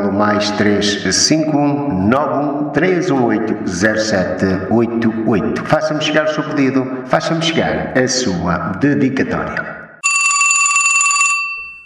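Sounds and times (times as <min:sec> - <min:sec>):
speech: 0:00.2 - 0:09.7
loud bright telephone bell ringing: 0:10.0 - 0:11.8.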